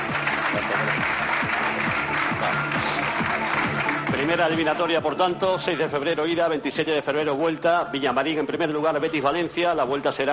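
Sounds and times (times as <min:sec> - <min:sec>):
stadium audience applause at Estadio Benito Villamarín: 0:00.0 - 0:04.8
rhythmic low tones: 0:00.0 - 0:06.2
speech: 0:00.6 - 0:01.7, 0:02.4 - 0:10.3.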